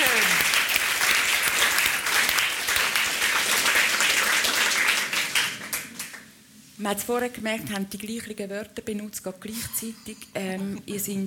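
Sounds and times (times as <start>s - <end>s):
applause: 0.0s - 6.3s
speech: 6.8s - 11.2s.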